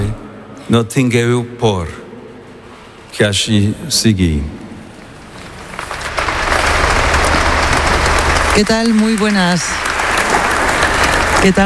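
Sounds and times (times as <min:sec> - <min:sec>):
speech: 0:00.7 - 0:02.0, 0:03.2 - 0:04.6, 0:08.6 - 0:09.9, 0:11.4 - 0:11.6
live applause after a speech: 0:05.6 - 0:11.6.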